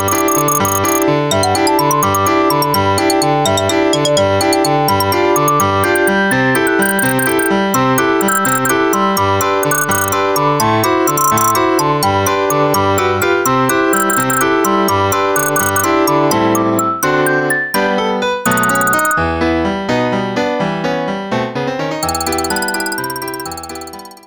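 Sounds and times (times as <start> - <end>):
dance music xylophone: 0.0 - 17.9, 18.5 - 19.3, 22.0 - 24.2
dance music piano: 0.0 - 24.2.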